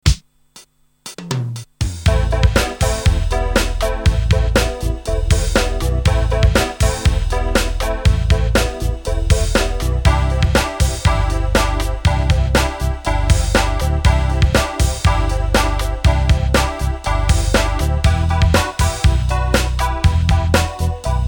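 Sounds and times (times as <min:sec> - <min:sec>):
rhythm: 0:00.0 - 0:21.2.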